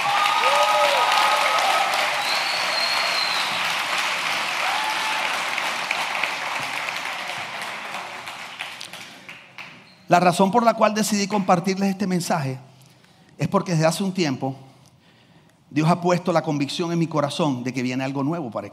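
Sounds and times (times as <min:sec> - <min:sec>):
whoops and cheers: 0:00.0 - 0:05.9
audience applause: 0:00.0 - 0:09.8
speech: 0:10.1 - 0:12.7, 0:13.4 - 0:14.7, 0:15.7 - 0:18.7.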